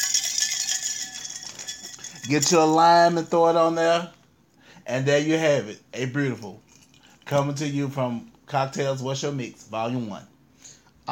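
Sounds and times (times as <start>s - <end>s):
ice cubes rattling in a cocktail shaker: 0.0s - 2.8s
speech: 2.3s - 4.2s, 4.9s - 6.7s, 7.3s - 10.3s.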